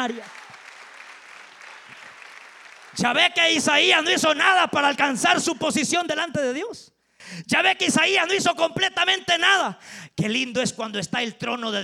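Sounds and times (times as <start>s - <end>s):
speech: 0.0s - 0.4s, 3.0s - 11.8s
audience applause: 0.0s - 3.6s.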